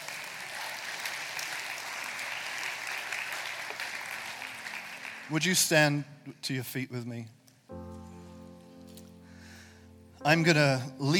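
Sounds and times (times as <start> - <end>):
audience applauding: 0.0 - 5.8
speech: 5.3 - 7.4, 10.2 - 11.1.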